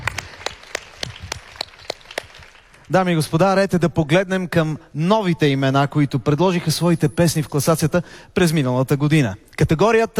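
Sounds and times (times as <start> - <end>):
audience applause at a Bulgarian music awards ceremony: 0.0 - 2.9
speech: 2.9 - 10.1.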